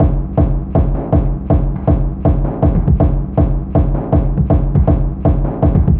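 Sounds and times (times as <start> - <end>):
idle beat loop: 0.0 - 5.9.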